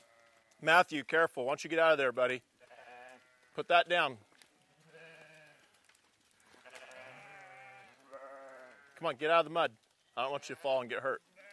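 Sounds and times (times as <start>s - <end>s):
Katahdin sheep bleating: 0.0s - 0.6s, 2.6s - 3.7s, 4.5s - 9.0s, 10.2s - 11.5s
speech: 0.6s - 2.5s, 3.6s - 4.3s, 9.0s - 11.3s.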